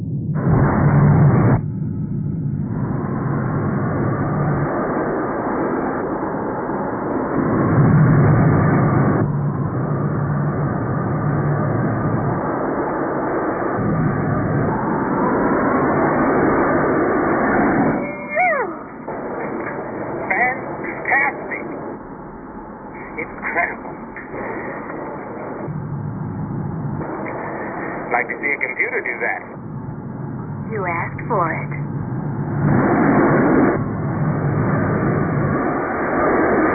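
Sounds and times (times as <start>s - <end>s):
Recon Viper 1 spacecraft engine thrust accelerating to light speed: 0.0s - 36.7s.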